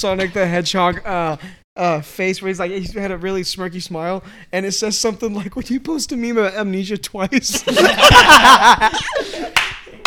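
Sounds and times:
speech: 0.0 - 9.7
voiced laughter: 7.5 - 10.0
sharp loud hand clap: 9.5 - 10.0.

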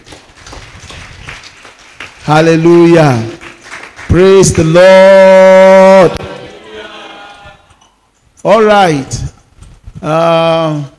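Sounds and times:
audience clapping: 0.0 - 5.1
speech: 2.3 - 3.4, 4.1 - 6.3, 8.4 - 9.4, 10.0 - 10.9.

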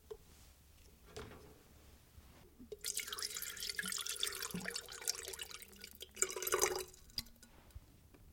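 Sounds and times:
hot water pouring for late-evening decaf coffee: 2.7 - 7.5.

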